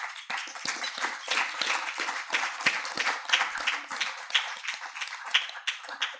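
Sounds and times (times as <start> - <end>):
crowd applauding: 0.0 - 6.1.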